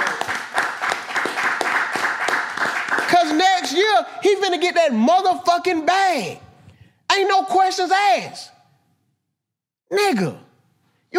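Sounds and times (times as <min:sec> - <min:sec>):
applause: 0:00.0 - 0:04.4
rhythmic clapping: 0:00.0 - 0:04.7
speech: 0:03.2 - 0:06.4, 0:07.2 - 0:08.5, 0:09.9 - 0:10.4.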